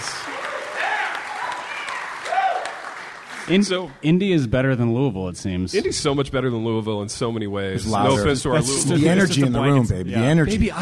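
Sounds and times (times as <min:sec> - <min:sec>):
small live studio audience clapping: 0:00.0 - 0:04.0
whoops and excited voices: 0:00.2 - 0:02.9
speech: 0:03.5 - 0:10.7.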